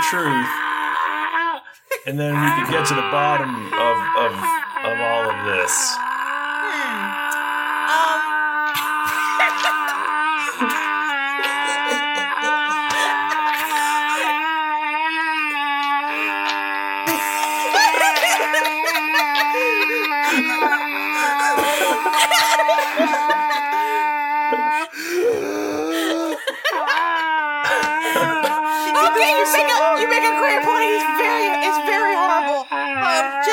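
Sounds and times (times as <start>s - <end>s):
person imitating loud screaming: 0.0s - 1.6s, 2.2s - 33.5s
speech: 0.1s - 0.6s, 2.0s - 7.2s
laughter: 1.8s - 4.4s, 8.0s - 14.7s, 16.1s - 24.9s, 25.8s - 32.5s.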